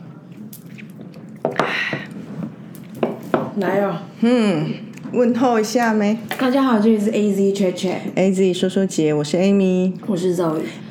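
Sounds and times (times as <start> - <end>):
wet squishy chewing: 0.3 - 1.4
speech: 3.6 - 10.8.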